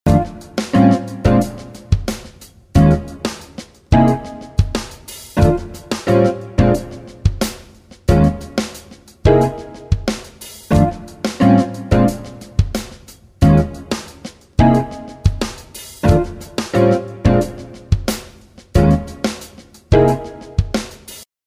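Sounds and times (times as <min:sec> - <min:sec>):
fusion jazz: 0:00.1 - 0:21.2.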